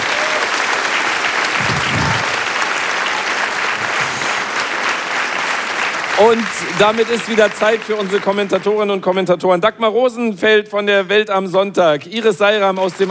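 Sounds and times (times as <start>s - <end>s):
audience applause: 0.0s - 8.6s
speech: 6.2s - 13.0s.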